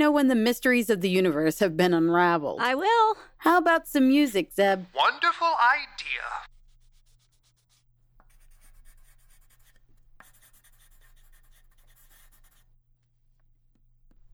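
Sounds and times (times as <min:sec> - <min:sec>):
speech: 0:00.0 - 0:06.5
pen scratching across paper writing notes: 0:06.5 - 0:12.6.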